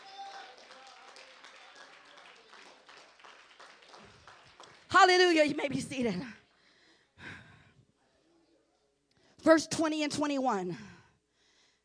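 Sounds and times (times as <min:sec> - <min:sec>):
audience clapping hands: 0:00.0 - 0:05.4
speech: 0:05.0 - 0:06.4, 0:09.4 - 0:10.9.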